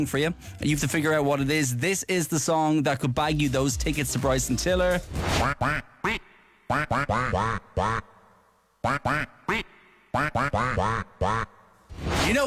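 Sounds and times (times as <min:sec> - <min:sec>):
speech: 0:00.0 - 0:06.2, 0:08.8 - 0:09.4, 0:12.3 - 0:12.4
person quacking like a duck into microphone: 0:05.4 - 0:11.7.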